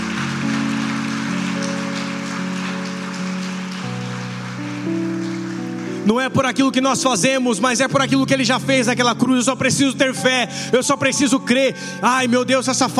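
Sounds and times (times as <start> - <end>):
audience applauding: 0.0 - 7.4
speech: 6.1 - 12.9.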